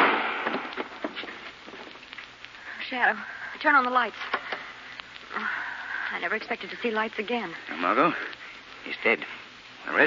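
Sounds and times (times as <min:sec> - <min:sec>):
gunshot in a 1940 radio drama: 0:00.0 - 0:01.2
speech: 0:02.9 - 0:04.4, 0:06.1 - 0:10.0.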